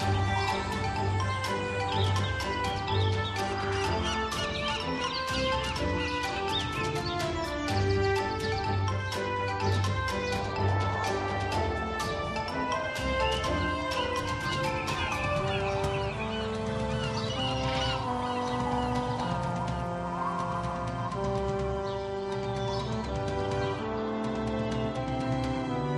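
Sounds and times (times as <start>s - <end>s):
ambient map hub theme music: 0.0s - 25.9s.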